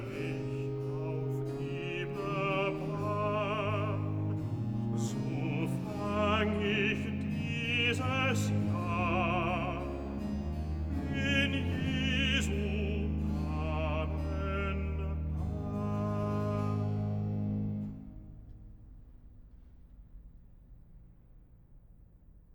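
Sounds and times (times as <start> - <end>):
bass voice singing recitative: 0.0 - 17.9.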